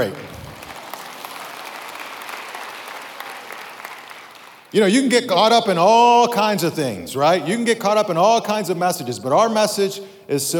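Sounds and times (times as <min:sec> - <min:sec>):
speech: 0:00.0 - 0:00.3, 0:04.7 - 0:10.5
audience clapping: 0:00.0 - 0:04.8.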